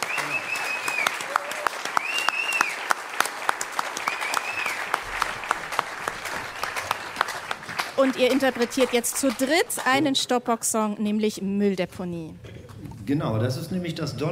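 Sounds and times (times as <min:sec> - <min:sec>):
audience applause: 0:00.0 - 0:10.3
speech: 0:08.0 - 0:12.5, 0:13.1 - 0:14.3.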